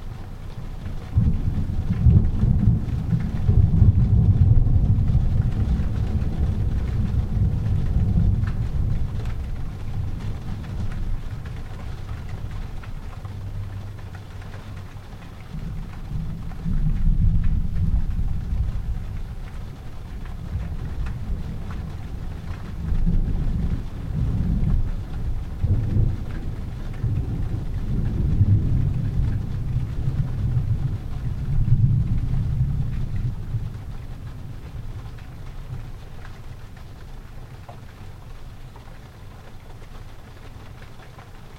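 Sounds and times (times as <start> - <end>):
thunder: 0.9 - 13.8, 15.5 - 34.9.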